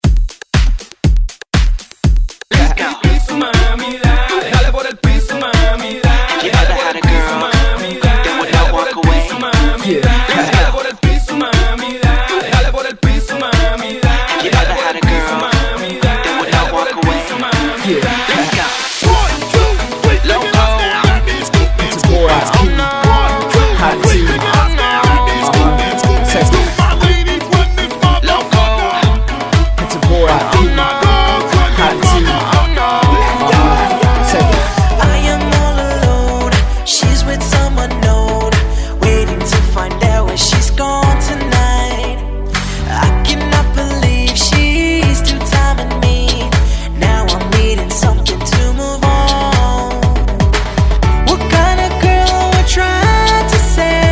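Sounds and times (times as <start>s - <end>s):
hype redrum drum beat at 120 BPM: 0.0s - 41.8s, 43.1s - 54.1s.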